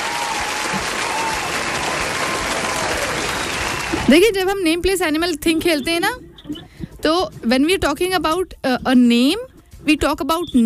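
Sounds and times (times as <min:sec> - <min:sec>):
clapping for children during a classroom word game: 0:00.0 - 0:04.3
speech: 0:04.1 - 0:10.6.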